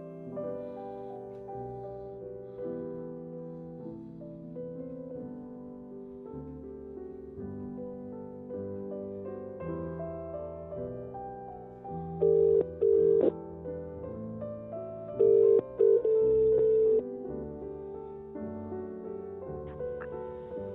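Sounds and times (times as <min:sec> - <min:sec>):
quiet music: 0:00.0 - 0:20.7
telephone dialing tones: 0:12.2 - 0:13.3, 0:15.2 - 0:17.0.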